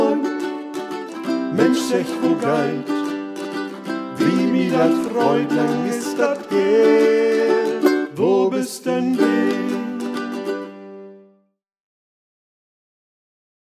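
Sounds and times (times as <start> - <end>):
a cappella singing: 0.0 - 0.5, 1.3 - 3.1, 4.1 - 10.6.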